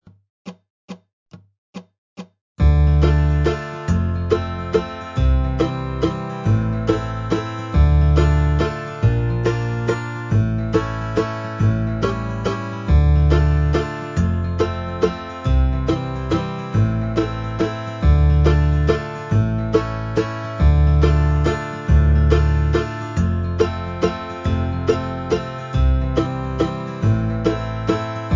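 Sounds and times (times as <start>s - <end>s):
dobro folk backing track: 2.6s - 28.3s.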